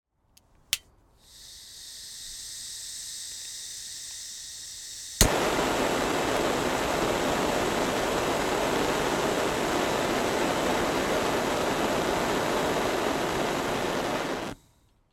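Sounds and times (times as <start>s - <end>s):
industrial gas blowtorch igniting and blasting: 1.2s - 14.6s.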